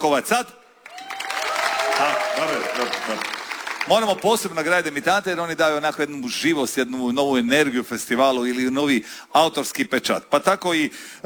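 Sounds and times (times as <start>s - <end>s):
speech: 0.0s - 0.6s, 2.0s - 11.2s
festival audience applauding a debut songwriter: 0.8s - 5.8s
festival crowd noise: 0.9s - 6.2s.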